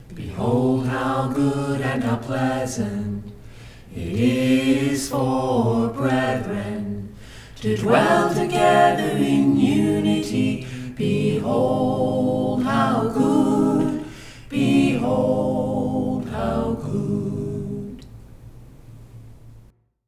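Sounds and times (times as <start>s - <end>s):
a cappella scripture song: 0.0s - 18.3s.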